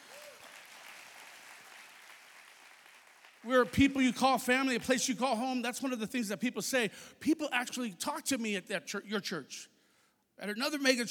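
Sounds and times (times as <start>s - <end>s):
audience clapping hands: 0.0s - 4.7s
speech: 3.4s - 9.7s, 10.4s - 11.0s.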